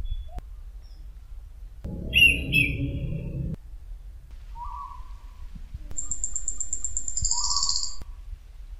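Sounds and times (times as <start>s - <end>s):
thrush song: 1.9s - 3.6s.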